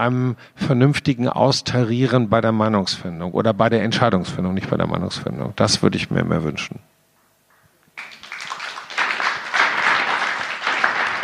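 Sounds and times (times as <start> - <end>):
speech: 0.0 - 6.9
audience clapping: 7.5 - 11.2.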